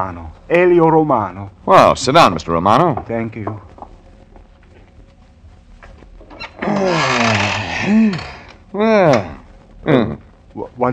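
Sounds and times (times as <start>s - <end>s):
speech: 0.0s - 3.7s, 6.7s - 10.9s
office chair mechanism creaking: 5.8s - 9.4s.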